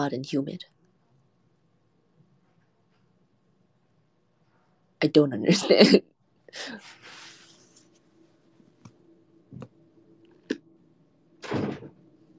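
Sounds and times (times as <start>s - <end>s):
speech: 0.0s - 0.8s, 5.0s - 7.2s
low hum: 0.0s - 12.3s
door shut loudly: 11.4s - 12.0s.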